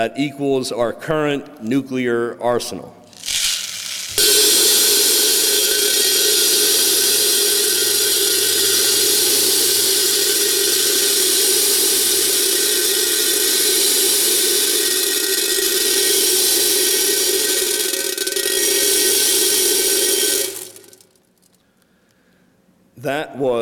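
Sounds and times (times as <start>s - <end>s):
speech: 0.0s - 3.0s
BBs being poured into a container: 3.1s - 21.6s.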